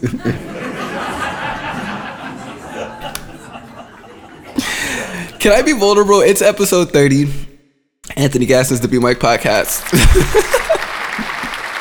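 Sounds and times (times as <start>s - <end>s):
speech: 0.0s - 0.5s, 5.4s - 7.5s, 8.2s - 10.6s
laughter: 0.0s - 5.6s, 9.8s - 11.7s
round of applause: 9.6s - 11.7s.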